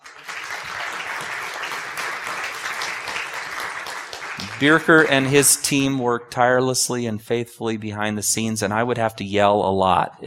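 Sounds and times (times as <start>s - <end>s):
audience applause: 0.0s - 5.9s
speech: 4.6s - 10.2s.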